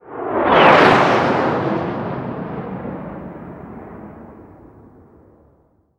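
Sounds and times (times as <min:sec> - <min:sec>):
plane: 0:00.0 - 0:05.7.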